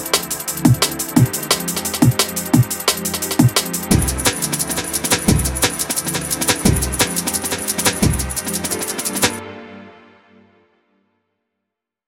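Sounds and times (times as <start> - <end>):
jungle drum breaks: 0.0 - 9.4.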